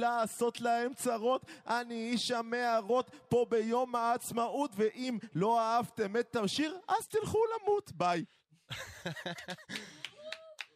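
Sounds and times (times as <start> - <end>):
speech: 0.0 - 10.0
chuckling: 8.7 - 10.4
scattered hand claps in a radio studio: 9.4 - 10.7.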